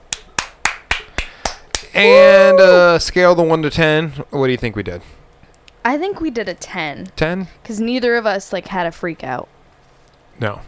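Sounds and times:
hand claps: 0.1 - 1.9
speech: 2.0 - 5.2, 5.8 - 9.6, 10.4 - 10.6.

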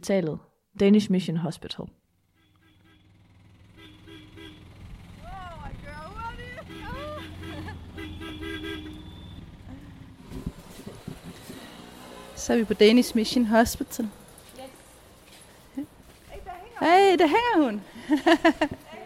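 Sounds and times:
speech: 0.0 - 2.0, 12.4 - 14.2, 16.8 - 18.9
small yellow auto-rickshaw ride: 2.1 - 19.0
honking traffic: 2.2 - 10.4, 11.5 - 13.5
laughter: 6.3 - 8.2, 17.9 - 19.0.

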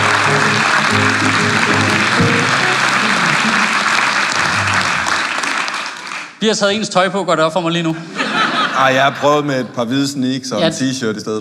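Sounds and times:
audience applause welcoming a politician onto a talk show stage: 0.0 - 6.4
speech: 6.4 - 8.2, 8.8 - 11.3
laughter: 8.0 - 10.2.

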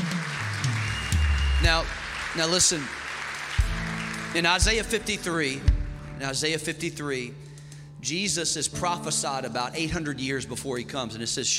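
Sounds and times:
crowd clapping: 0.0 - 6.5
speech: 1.6 - 3.0, 4.4 - 11.5.

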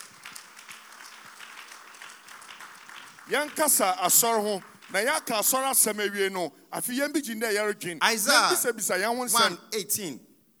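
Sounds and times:
audience clapping: 0.0 - 6.1
speech: 3.3 - 10.3.

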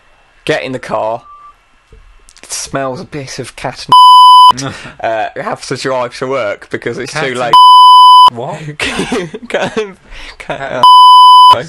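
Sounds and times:
speech: 0.5 - 1.3, 2.6 - 11.0
high-pitched censor bleep: 3.9 - 4.6, 7.5 - 8.3, 10.8 - 11.6.

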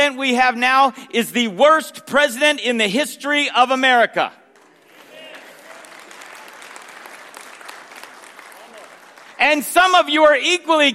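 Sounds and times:
speech: 0.1 - 4.4, 9.4 - 10.9
crowd clapping: 4.4 - 10.4.

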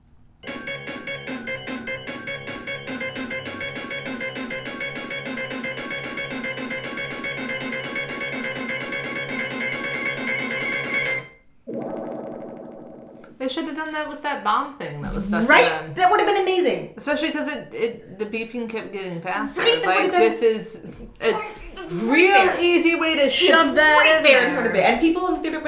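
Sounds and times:
video game underwater drowning countdown chiptune music: 0.4 - 11.3
speech: 13.5 - 25.6
laughter: 15.0 - 15.8, 19.4 - 25.3.

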